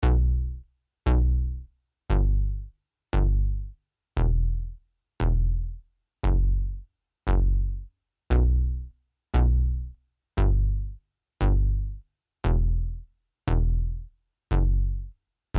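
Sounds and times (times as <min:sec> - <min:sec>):
bass: 0:00.0 - 0:15.5.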